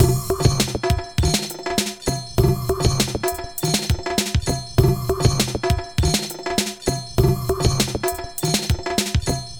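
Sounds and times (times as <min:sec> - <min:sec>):
bongo jangle beat: 0:00.0 - 0:09.5.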